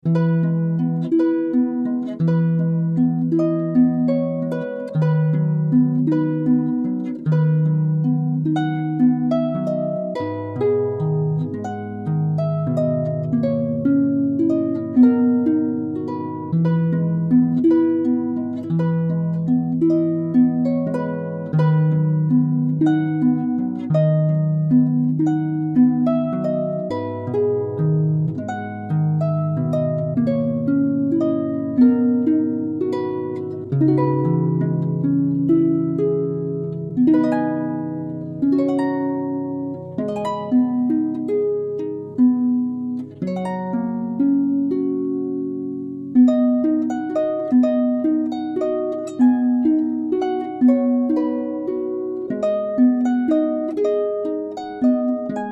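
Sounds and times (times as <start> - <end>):
harp: 0.0 - 55.5.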